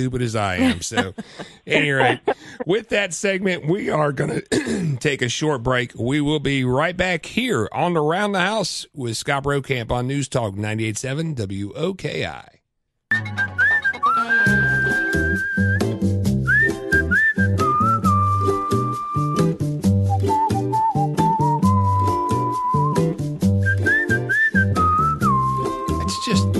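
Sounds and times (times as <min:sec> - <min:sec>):
speech: 0:00.0 - 0:13.5
laughter: 0:00.5 - 0:02.8
whistled tune: 0:13.1 - 0:26.5.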